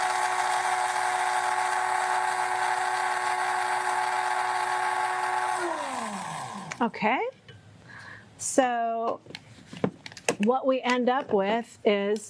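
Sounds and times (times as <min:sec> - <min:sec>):
coffee grinder grinding seeds: 0:00.0 - 0:06.9
speech: 0:06.8 - 0:07.4, 0:08.5 - 0:09.4, 0:10.4 - 0:12.2.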